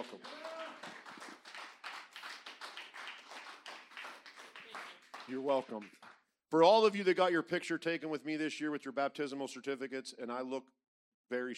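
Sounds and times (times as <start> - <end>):
speech: 0.0 - 0.4, 5.3 - 11.5
church congregation clapping for a newly baptized member: 0.0 - 6.3.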